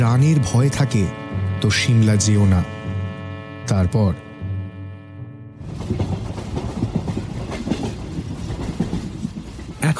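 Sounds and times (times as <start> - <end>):
speech: 0.0 - 2.8, 3.7 - 4.2
sustained tonal sound: 0.0 - 7.1
train wheels clickety-clack over rail joints: 5.6 - 9.9.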